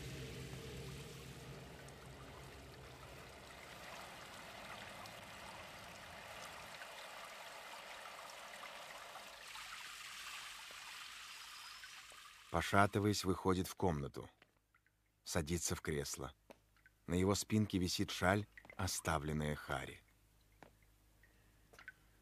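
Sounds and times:
shower water running: 0.0s - 12.6s
speech: 12.5s - 14.4s, 15.3s - 16.4s, 17.1s - 20.0s.

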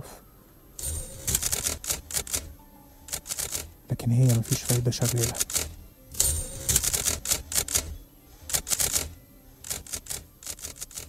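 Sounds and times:
typewriter typing: 0.8s - 11.0s
speech: 3.9s - 5.6s.

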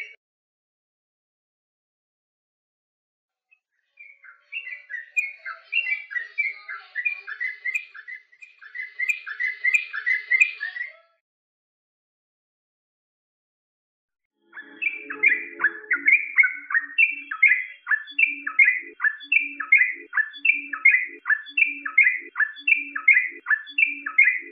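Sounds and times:
bird song of whistled and warbled notes: 3.9s - 11.0s, 14.4s - 24.4s.

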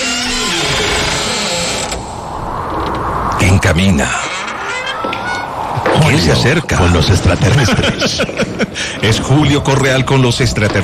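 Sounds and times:
door creaking open: 0.0s - 6.2s
speech: 3.7s - 4.3s, 6.0s - 10.8s
laughter: 6.9s - 9.2s.

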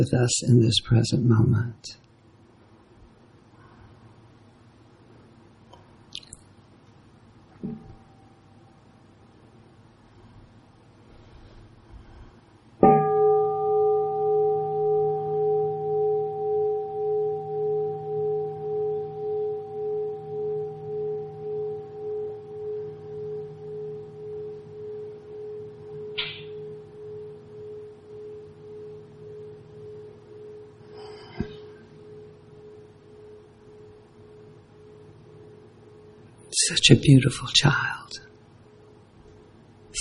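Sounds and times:
speech: 0.0s - 2.0s, 36.9s - 38.2s
single strike of a mindfulness bell: 12.8s - 36.4s.

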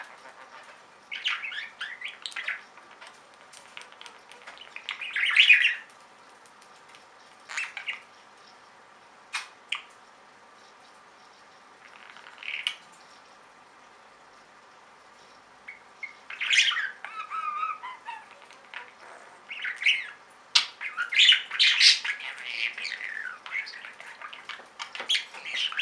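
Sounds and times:
budgerigar chatter: 0.0s - 5.9s, 15.7s - 25.8s.

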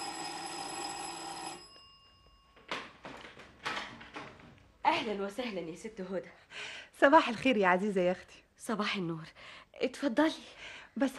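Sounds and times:
doorbell ringing: 0.0s - 3.2s
speech: 5.0s - 11.1s.

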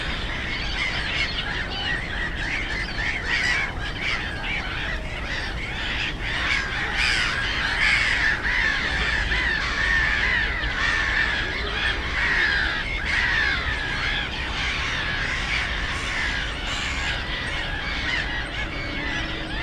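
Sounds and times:
black-headed gulls calling: 0.0s - 19.6s
other birds: 0.0s - 19.6s
road and rail rumble: 16.5s - 19.6s.

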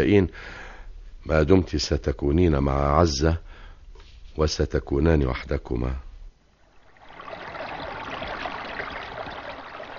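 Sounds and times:
speech: 0.0s - 0.6s, 1.2s - 3.5s, 4.4s - 6.0s
flowing water of the Tigris river at its shore: 6.6s - 9.9s.

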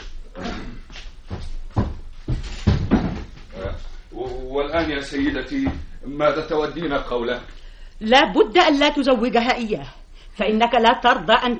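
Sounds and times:
door being closed with heavy thuds and clunks: 1.8s - 3.4s
speech: 4.6s - 11.5s.

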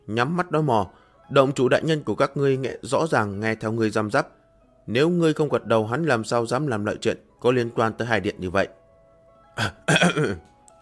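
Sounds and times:
speech: 0.1s - 8.8s, 9.6s - 10.5s
dry coughs: 9.6s - 10.5s
throat clearing: 9.6s - 10.5s.

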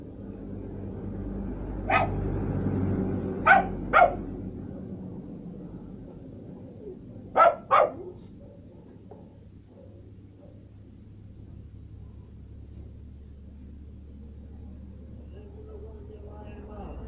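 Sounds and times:
steady low rumble: 0.0s - 17.0s
dog barking as it arrives: 1.9s - 2.2s, 3.4s - 4.3s, 7.3s - 10.7s.

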